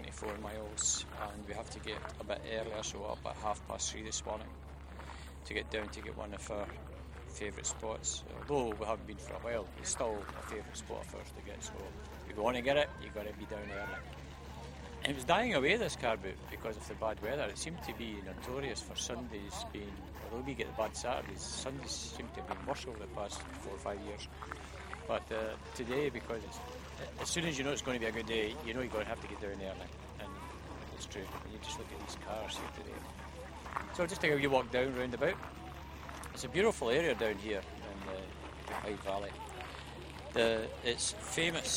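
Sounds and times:
car boot sale ambience in the Clyde valley: 0.0s - 41.7s.

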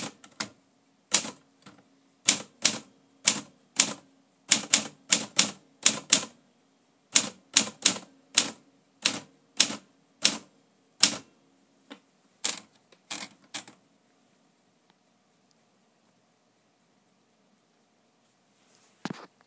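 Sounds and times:
typing: 0.0s - 6.4s, 7.2s - 11.2s, 12.4s - 13.8s.

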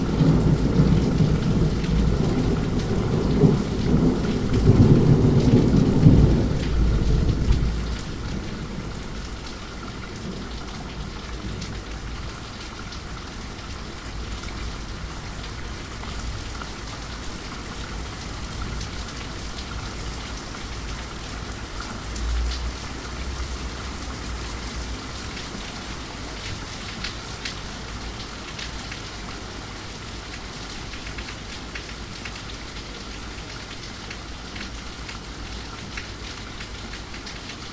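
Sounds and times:
thunderstorm: 0.0s - 9.1s.

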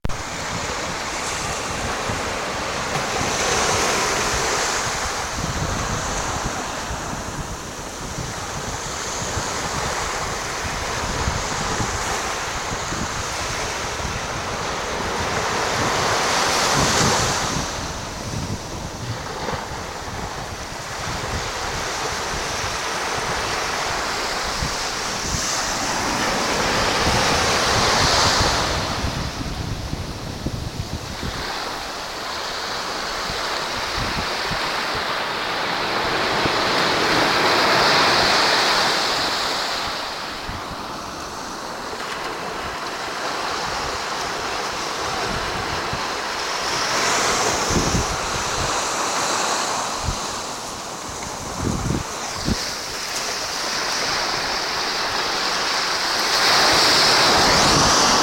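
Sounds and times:
waves at Ravensheugh beach Tyninghame: 0.0s - 58.2s.

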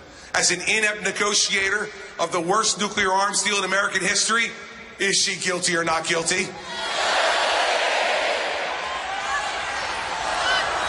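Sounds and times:
speech: 0.4s - 6.9s
crowd chanting a slogan: 6.8s - 10.8s.

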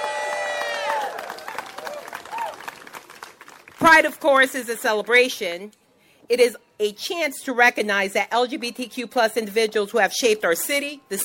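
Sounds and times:
cheering voices: 0.0s - 2.7s
crowd clapping: 0.0s - 4.0s
speech: 3.8s - 11.2s.

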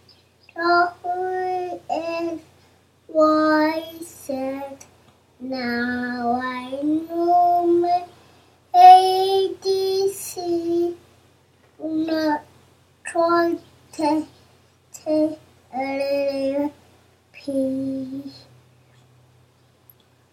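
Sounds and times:
baby singing a nursery song: 0.6s - 2.4s, 3.1s - 8.1s, 8.8s - 11.0s, 11.8s - 12.5s, 13.1s - 14.3s, 15.0s - 16.8s.

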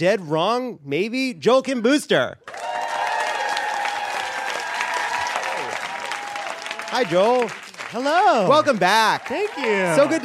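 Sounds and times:
speech: 0.0s - 2.6s, 6.9s - 10.2s
talk show studio audience clapping: 2.4s - 10.2s.

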